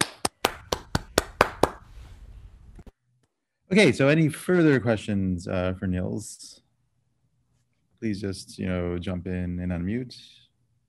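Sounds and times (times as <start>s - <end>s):
applause: 0.0s - 1.9s
speech: 3.7s - 6.6s, 8.0s - 10.4s.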